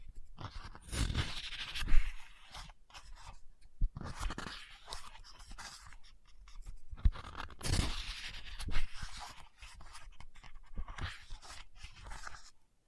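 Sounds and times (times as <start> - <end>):
book scratching: 0.0 - 12.6
page turning: 0.3 - 12.5.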